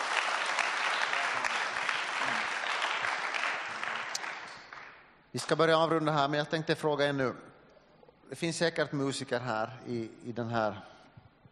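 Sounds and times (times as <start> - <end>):
audience applause: 0.0 - 5.0
speech: 5.3 - 7.5, 8.3 - 10.9.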